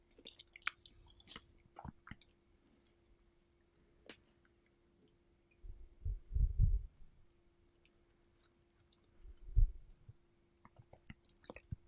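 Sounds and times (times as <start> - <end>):
strawberries being eaten with wet squishy chewing: 0.0 - 2.4, 10.6 - 11.8
faint steady hum: 0.0 - 11.8
mouth clicks and smacks: 0.1 - 2.4, 10.6 - 11.8.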